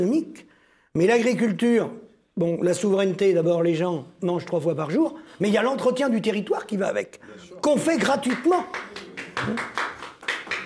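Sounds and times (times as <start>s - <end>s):
speech: 0.0s - 9.9s
person applauding: 8.0s - 10.6s.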